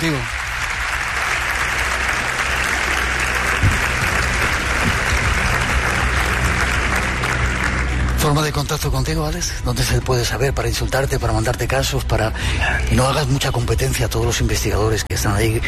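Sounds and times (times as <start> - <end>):
audience applause: 0.0 - 8.7
speech: 8.3 - 15.6.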